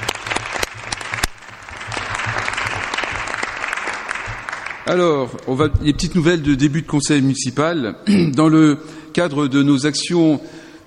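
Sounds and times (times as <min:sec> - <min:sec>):
group of people clapping: 0:00.0 - 0:05.6
speech: 0:04.9 - 0:10.6.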